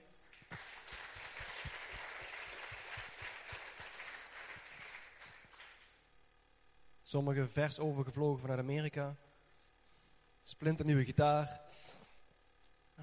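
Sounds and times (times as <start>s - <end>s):
audience applause: 0.2s - 6.0s
speech: 7.1s - 9.2s, 10.6s - 11.8s.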